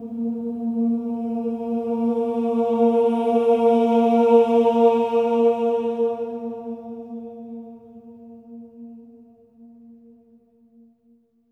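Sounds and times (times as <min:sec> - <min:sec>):
choir ohs swell on A#3: 0:00.0 - 0:08.3.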